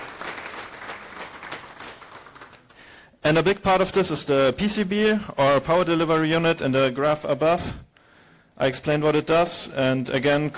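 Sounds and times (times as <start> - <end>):
audience applause: 0.0 - 2.8
speech: 3.2 - 7.9, 8.6 - 10.5.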